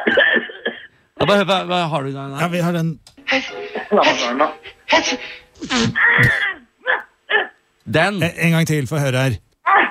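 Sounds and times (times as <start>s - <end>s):
speech: 1.3s - 6.5s, 7.9s - 9.5s
sneeze: 5.6s - 7.5s.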